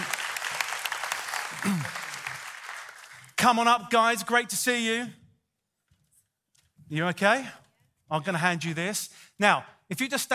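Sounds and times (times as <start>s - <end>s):
audience applauding to welcome a couple onto a stage: 0.0s - 3.4s
speech: 1.6s - 2.0s, 3.4s - 5.2s, 6.9s - 10.3s.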